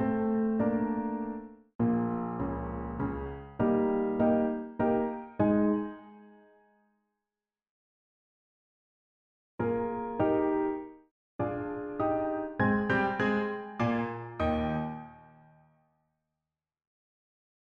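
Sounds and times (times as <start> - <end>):
solo piano: 0.0 - 6.5, 9.6 - 15.6.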